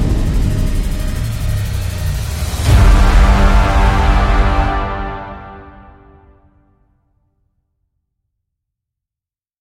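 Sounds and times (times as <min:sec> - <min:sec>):
powerful cinematic trailer music: 0:00.0 - 0:06.8.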